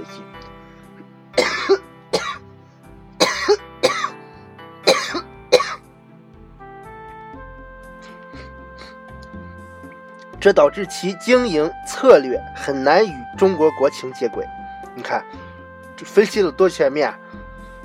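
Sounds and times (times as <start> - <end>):
person coughing: 1.4 - 2.4, 3.2 - 4.2, 4.8 - 5.8
speech: 10.4 - 15.4, 16.0 - 17.2.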